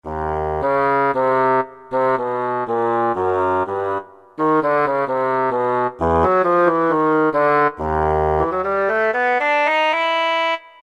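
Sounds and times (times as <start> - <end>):
bassoon: 0.0 - 10.8.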